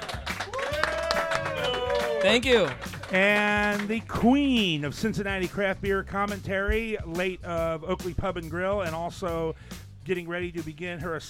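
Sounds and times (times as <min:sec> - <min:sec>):
audience clapping: 0:00.0 - 0:04.2
speech: 0:02.2 - 0:11.2.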